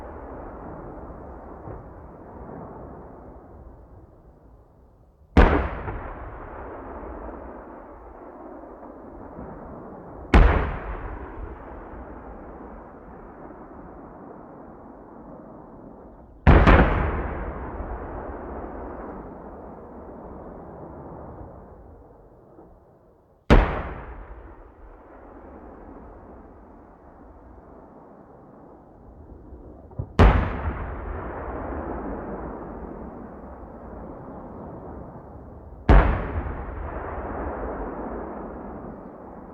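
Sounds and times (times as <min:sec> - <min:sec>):
tank cannon firing: 0:05.4 - 0:08.0, 0:10.3 - 0:12.2, 0:16.5 - 0:19.4, 0:23.5 - 0:26.4, 0:30.0 - 0:33.7, 0:35.9 - 0:39.5.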